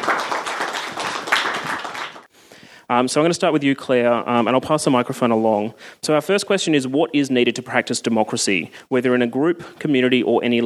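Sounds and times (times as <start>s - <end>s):
audience applause welcoming a panel of speakers: 0.0s - 2.3s
speech: 3.0s - 10.6s.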